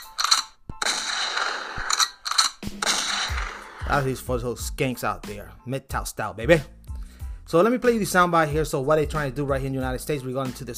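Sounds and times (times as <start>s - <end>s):
metallic mechanical clatter and rattling of a shotgun sound effect: 0.0s - 3.6s
shotgun blast sound effect: 2.6s - 4.0s
speech: 3.9s - 6.8s, 7.5s - 10.7s.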